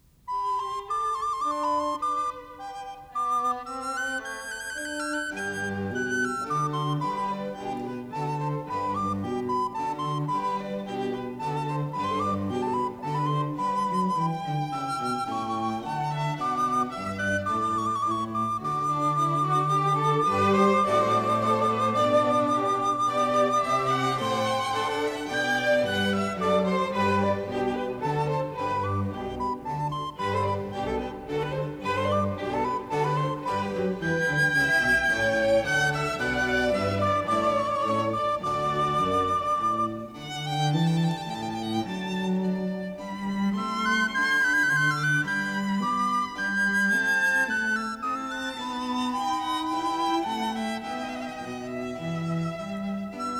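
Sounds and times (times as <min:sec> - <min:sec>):
recorder concerto: 0:00.0 - 0:53.3.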